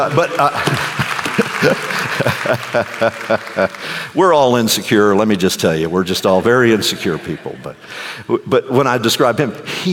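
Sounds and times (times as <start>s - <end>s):
speech: 0.0s - 0.9s, 1.6s - 9.9s
audience applause: 0.0s - 4.2s
laughter: 0.0s - 4.2s, 6.8s - 8.0s.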